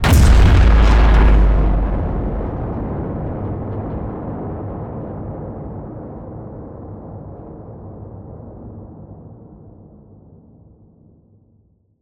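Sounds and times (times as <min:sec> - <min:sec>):
distorted cinematic hit: 0:00.0 - 0:05.3.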